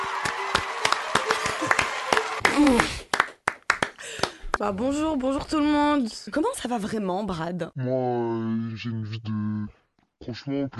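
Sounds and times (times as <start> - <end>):
applause: 0.0 - 4.6
speech: 4.6 - 10.7.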